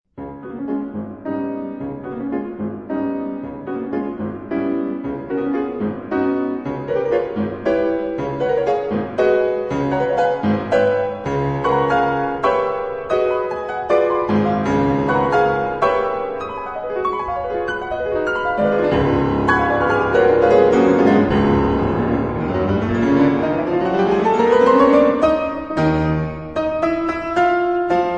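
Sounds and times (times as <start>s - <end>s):
piano version of a Credo: 0.1s - 28.1s.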